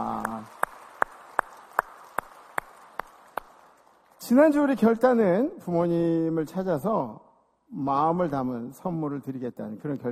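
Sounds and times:
audience applause: 0.0 - 4.1
speech: 4.3 - 10.1.

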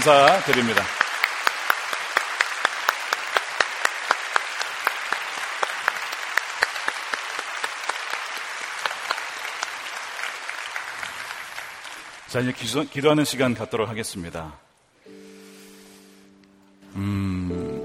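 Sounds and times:
speech: 0.0 - 1.0, 12.3 - 14.7, 17.0 - 17.2
audience applause: 0.0 - 13.3.

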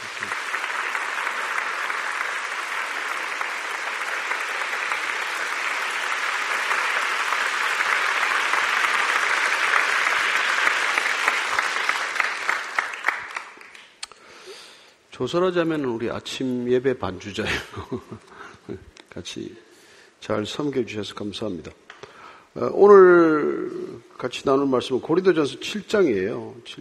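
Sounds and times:
audience applause of consolation and encouragement: 0.0 - 14.0
speech: 15.2 - 21.8, 22.6 - 26.8.

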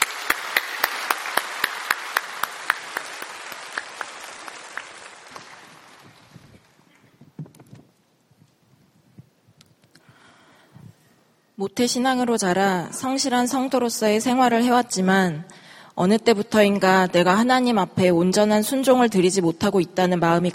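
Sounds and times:
audience applause: 0.0 - 6.8
speech: 11.6 - 20.5.

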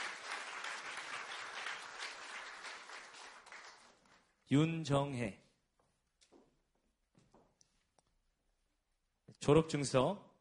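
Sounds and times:
crowd applauding: 0.0 - 4.3
speech: 4.5 - 5.4, 9.5 - 10.4.

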